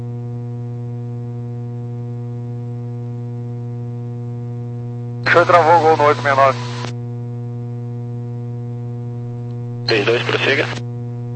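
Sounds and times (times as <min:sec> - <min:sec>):
radio carrier hum: 0:05.2 - 0:07.0, 0:09.1 - 0:11.3
speech: 0:05.3 - 0:06.7, 0:09.9 - 0:10.8.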